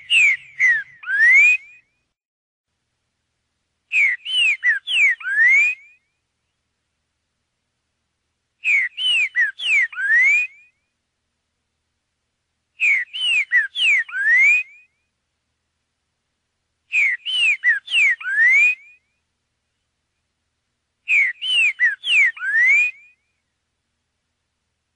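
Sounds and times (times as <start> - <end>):
green-winged saltator song: 0.0 - 2.0, 3.9 - 6.6, 8.6 - 11.0, 12.8 - 15.1, 16.9 - 19.8, 21.1 - 23.5.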